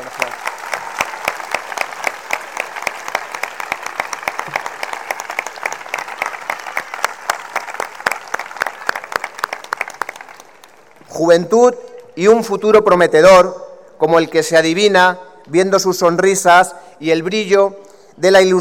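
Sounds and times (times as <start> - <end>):
big ovation applause: 0.0 - 11.1
speech: 11.2 - 18.5.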